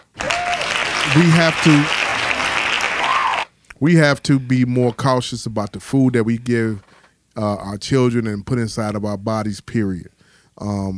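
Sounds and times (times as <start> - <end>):
many hands clapping: 0.0 - 3.8
voices whooping and cheering: 0.2 - 3.5
speech: 1.2 - 2.0, 3.8 - 10.9.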